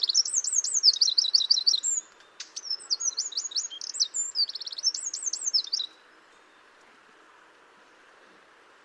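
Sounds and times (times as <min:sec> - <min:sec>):
Eurasian wren Troglodytes troglodytes singing high trills and rattles: 0:00.0 - 0:06.7.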